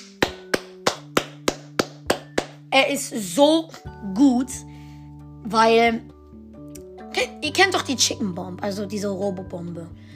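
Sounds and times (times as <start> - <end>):
single hand clap: 0.0 - 2.6
speech: 2.8 - 4.7, 5.4 - 6.1, 7.2 - 10.1.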